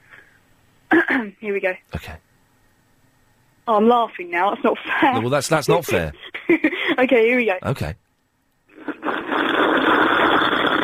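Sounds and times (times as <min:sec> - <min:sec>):
speech: 0:01.2 - 0:02.3, 0:03.7 - 0:08.0
loud slurp of liquid: 0:08.7 - 0:10.8.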